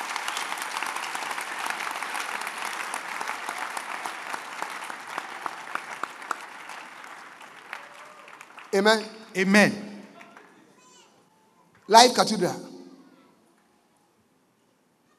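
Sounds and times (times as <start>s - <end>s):
audience applauding: 0.0s - 10.6s
speech: 8.7s - 9.9s, 11.9s - 12.7s.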